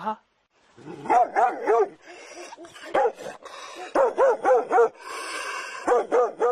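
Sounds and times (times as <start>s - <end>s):
dog barking: 1.0s - 5.0s, 5.8s - 6.5s.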